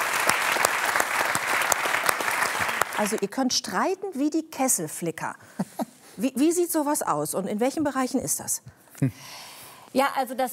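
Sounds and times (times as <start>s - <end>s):
audience applause: 0.0s - 3.2s
speech: 3.0s - 10.5s.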